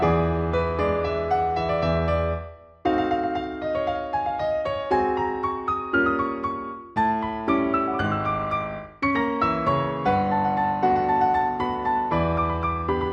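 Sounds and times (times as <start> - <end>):
piano version of a piece: 0.0 - 13.1.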